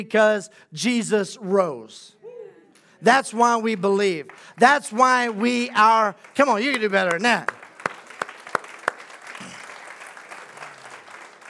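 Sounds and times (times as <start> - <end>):
speech: 0.0 - 2.2, 3.0 - 7.6
audience clapping: 3.6 - 11.4.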